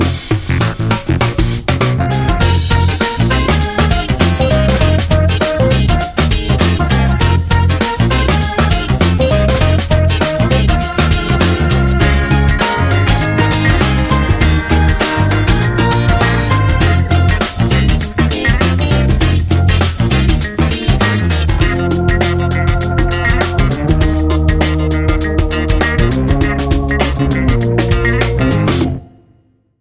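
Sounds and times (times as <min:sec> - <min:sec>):
funk music: 0:00.0 - 0:29.2.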